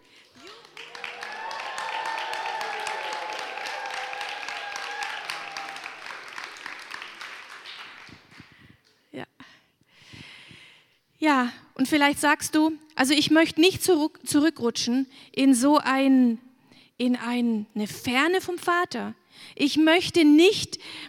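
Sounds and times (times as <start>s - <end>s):
audience cheering and applauding: 0.2s - 8.4s
speech: 11.2s - 16.4s, 17.0s - 21.0s.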